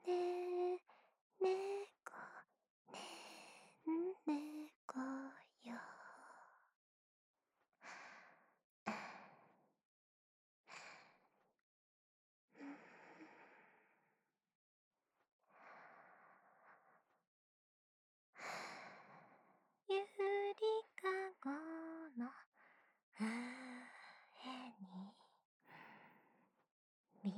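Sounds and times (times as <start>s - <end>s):
lullaby: 0.0s - 6.4s, 19.9s - 22.5s, 23.2s - 25.3s.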